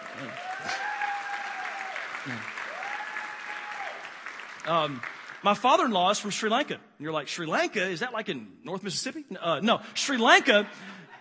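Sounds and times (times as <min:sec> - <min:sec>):
audience applause for the speaker's parents-in-law: 0:00.0 - 0:05.9
speech: 0:02.2 - 0:02.6, 0:04.7 - 0:11.0.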